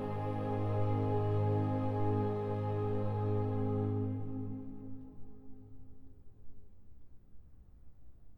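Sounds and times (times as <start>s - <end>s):
choir singing: 0.0s - 5.2s.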